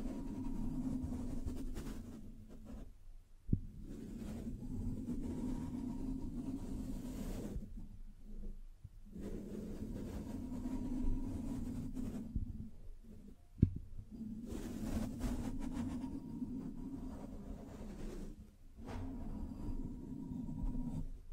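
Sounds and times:
low rumbling scratching and tracing strokes: 0.0s - 13.4s, 14.0s - 21.3s.

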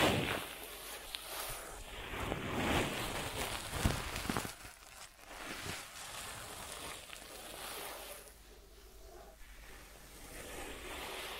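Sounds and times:
crackly rustling and scratching from ASMR ear treatment: 0.0s - 11.3s
soft steady hiss: 0.0s - 11.3s.

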